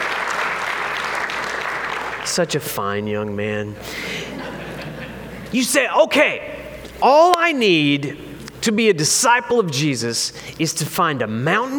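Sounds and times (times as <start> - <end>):
audience applause: 0.0 - 2.3
speech: 2.2 - 4.2, 5.5 - 11.7
laughter: 3.8 - 5.5.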